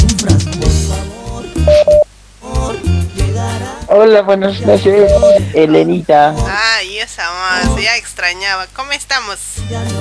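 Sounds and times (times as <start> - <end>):
music: 0.0 - 3.9, 4.6 - 5.6, 9.6 - 9.9
electronic telephone tones signalling an incoming call: 1.6 - 2.1, 4.7 - 5.6
speech: 4.0 - 9.9.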